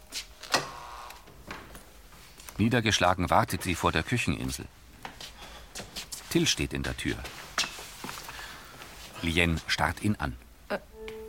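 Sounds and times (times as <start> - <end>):
door buzzer being pressed: 0.5 - 1.3
speech: 2.6 - 4.9, 6.3 - 7.4, 9.2 - 10.9.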